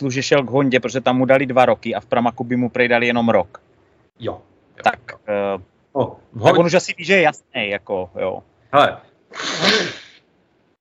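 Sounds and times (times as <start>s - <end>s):
speech: 0.0s - 10.0s
person blowing nose: 9.3s - 10.2s.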